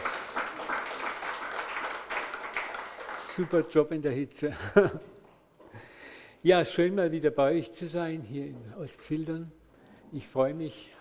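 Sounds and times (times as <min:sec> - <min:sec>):
dense crowd applause for the band: 0:00.0 - 0:03.7
speech: 0:03.4 - 0:05.2, 0:06.4 - 0:10.9
laughter: 0:04.5 - 0:05.2.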